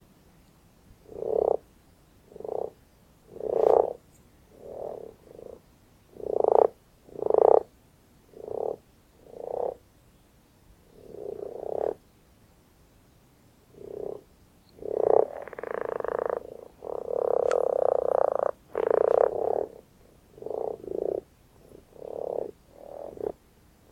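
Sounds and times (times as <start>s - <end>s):
Common frog giving low rasping grunts and purring croaks: 1.0s - 1.6s, 2.3s - 7.7s, 8.3s - 9.8s, 10.9s - 12.0s, 13.7s - 14.2s, 14.8s - 23.4s.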